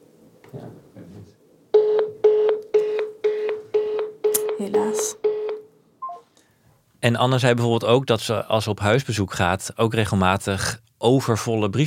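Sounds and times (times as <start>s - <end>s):
telephone number being dialed beeps: 1.8s - 6.2s
speech: 4.8s - 5.2s, 7.0s - 11.8s.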